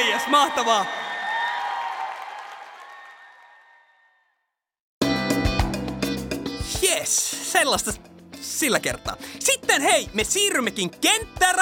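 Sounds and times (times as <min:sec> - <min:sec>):
audience applauding and cheering: 0:00.0 - 0:04.2
speech: 0:00.2 - 0:01.0, 0:07.0 - 0:11.5
loud rhythmic music with strong beats: 0:05.0 - 0:11.5.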